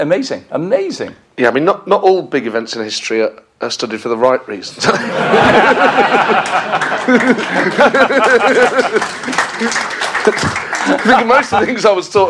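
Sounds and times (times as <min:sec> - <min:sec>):
speech: 0:00.0 - 0:12.2
crowd laughing: 0:04.8 - 0:11.8
scattered clapping: 0:06.1 - 0:12.0.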